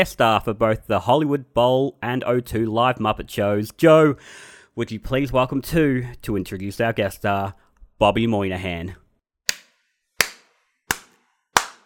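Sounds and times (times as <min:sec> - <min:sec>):
speech: 0:00.0 - 0:09.0
slow hand claps: 0:09.5 - 0:11.8.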